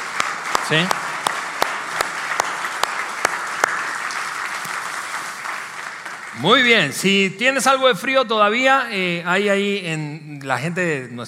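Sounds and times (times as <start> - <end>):
audience applause: 0.0 - 6.8
speech: 0.7 - 1.0, 6.4 - 11.2.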